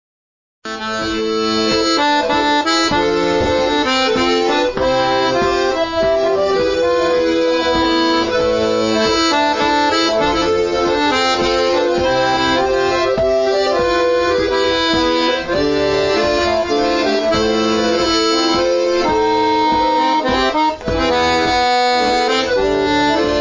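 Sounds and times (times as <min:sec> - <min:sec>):
mazurka second voice part: 0:00.7 - 0:23.3.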